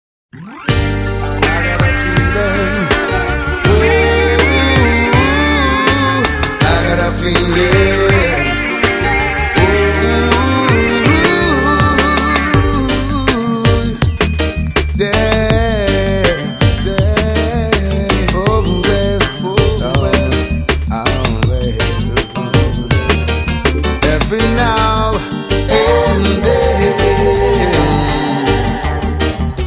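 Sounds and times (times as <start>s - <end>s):
reggae riddim: 0.4s - 29.6s.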